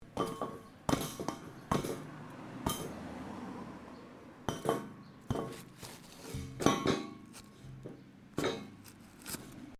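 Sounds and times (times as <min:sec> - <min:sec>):
small metal pipe impacts: 0:00.0 - 0:03.0, 0:04.4 - 0:09.0.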